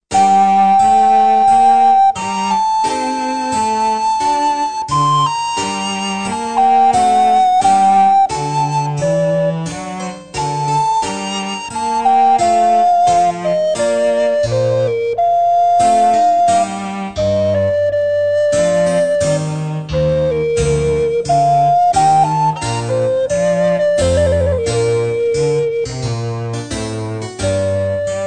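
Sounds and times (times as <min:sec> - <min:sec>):
sonata larghetto: 0:00.1 - 0:28.2.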